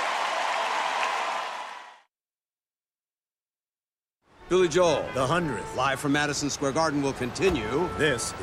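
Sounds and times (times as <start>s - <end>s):
crowd applause: 0.0s - 2.0s
speech: 4.5s - 8.4s.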